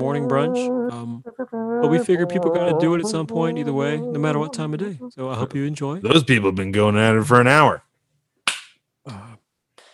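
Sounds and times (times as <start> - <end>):
short voiced humming sounds: 0.0 - 5.9
speech: 0.0 - 7.9
single sharp clap: 8.5 - 8.8.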